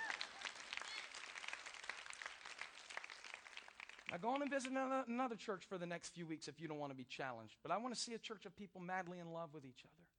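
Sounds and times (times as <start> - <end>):
women in audience clapping: 0.0 - 4.8
speech: 4.1 - 10.1.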